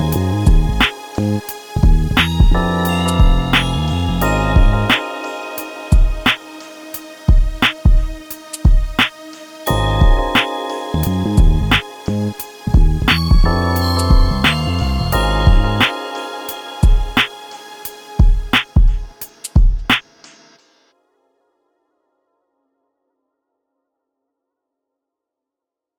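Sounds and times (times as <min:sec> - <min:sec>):
music beat: 0:00.0 - 0:20.4.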